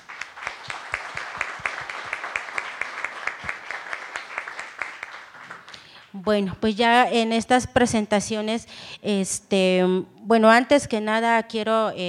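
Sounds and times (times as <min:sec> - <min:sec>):
crowd applauding: 0:00.0 - 0:06.1
speech: 0:06.2 - 0:12.0.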